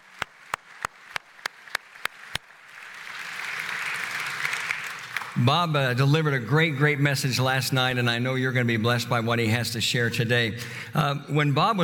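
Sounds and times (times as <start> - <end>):
sharp claps: 0.0 - 5.4
church congregation applause welcoming a guest: 0.0 - 5.5
speech: 5.4 - 11.8.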